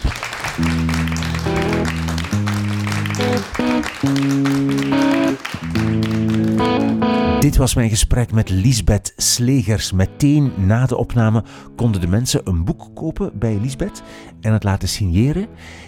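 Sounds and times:
audience applause: 0.0s - 7.4s
speech: 4.0s - 4.6s, 7.4s - 15.8s.

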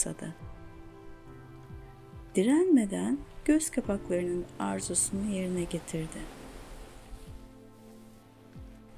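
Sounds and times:
speech: 0.0s - 0.4s, 2.3s - 6.4s
gentle sea waves: 0.0s - 8.9s.

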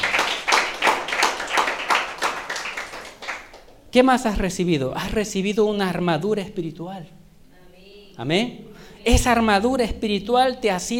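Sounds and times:
audience applauding: 0.0s - 3.8s
speech: 3.9s - 7.2s, 8.2s - 10.9s.

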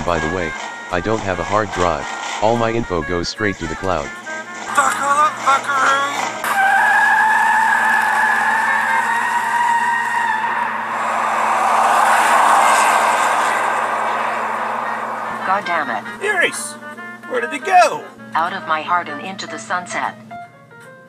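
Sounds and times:
car engine and road noise: 0.0s - 2.5s, 7.6s - 16.3s
speech: 0.1s - 4.9s, 16.4s - 20.3s
high tire squeal of a car on an Uber ride pulling away: 6.2s - 16.4s.

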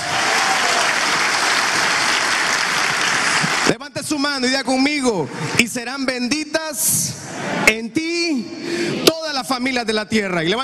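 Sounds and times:
audience applause: 0.0s - 3.8s
speech: 4.1s - 10.6s.

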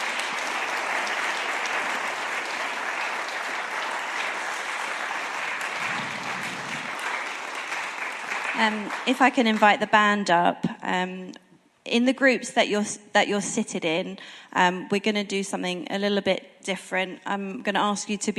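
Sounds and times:
audience applause: 0.0s - 9.7s
speech: 8.6s - 18.3s.

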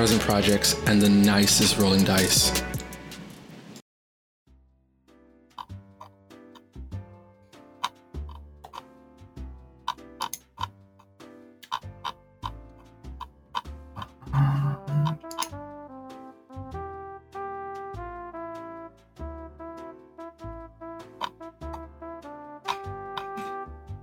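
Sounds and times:
speech: 0.0s - 2.8s
computer mouse scroll wheel clicking: 7.8s - 8.9s, 9.9s - 10.7s, 11.6s - 12.6s, 13.2s - 14.1s, 15.0s - 15.5s.

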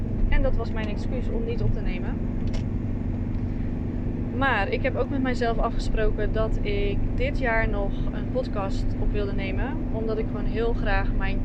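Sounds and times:
moving van engine and road hum heard inside: 0.0s - 11.4s
speech: 0.4s - 2.7s, 4.4s - 11.4s.

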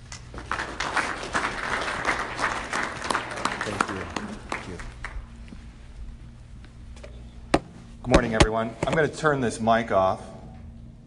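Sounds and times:
audience applause welcoming a speaker to the stage: 0.3s - 5.3s
speech: 8.4s - 10.3s.

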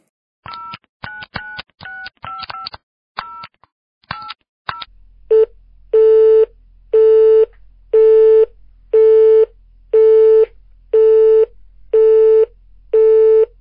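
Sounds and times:
phone busy tone: 5.3s - 13.5s.

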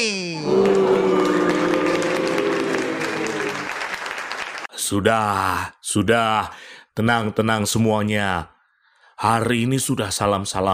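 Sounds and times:
audience applause: 0.4s - 4.7s
crowd cheering: 0.4s - 4.7s
speech: 4.9s - 8.5s, 9.2s - 10.7s.

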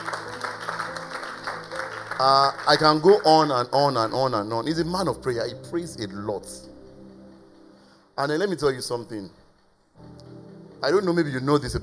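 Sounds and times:
audience applause: 0.0s - 3.5s
speech: 2.2s - 6.7s, 8.2s - 9.4s, 10.8s - 11.8s.

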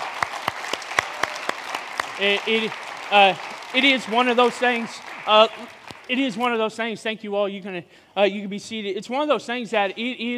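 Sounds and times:
audience applause: 0.0s - 6.7s
speech: 2.2s - 10.3s.

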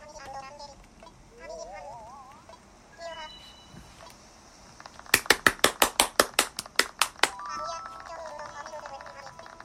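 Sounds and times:
hand claps given as a show of approval: 5.1s - 8.1s.

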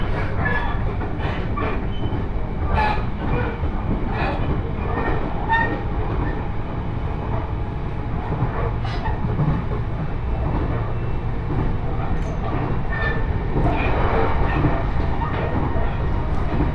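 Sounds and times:
wheel clacks on track joints: 0.0s - 6.6s, 7.2s - 16.7s
Joban Line train rumbling: 0.0s - 16.7s.

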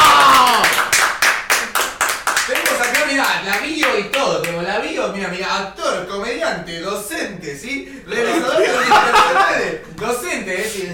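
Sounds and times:
applause: 0.0s - 4.6s
speech: 5.2s - 10.9s
laughter: 8.1s - 9.9s.

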